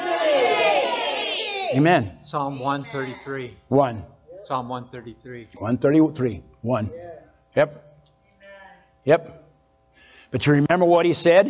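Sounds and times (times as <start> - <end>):
audience shouting in unison: 0.0 - 1.8
speech: 1.7 - 7.9, 9.0 - 9.4, 10.3 - 11.4.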